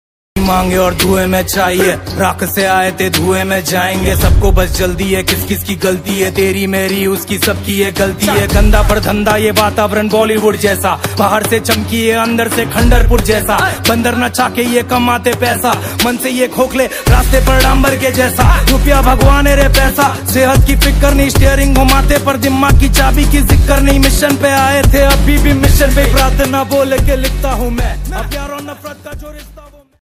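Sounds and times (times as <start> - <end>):
Punjabi rapping over beats: 0.4 - 30.0.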